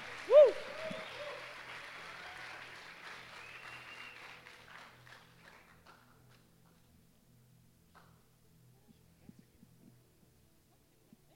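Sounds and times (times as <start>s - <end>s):
audience applauding: 0.0s - 6.4s.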